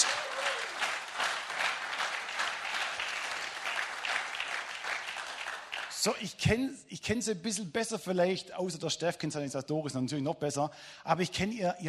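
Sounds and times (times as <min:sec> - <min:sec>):
audience applause: 0:00.0 - 0:06.1
speech: 0:06.0 - 0:11.8.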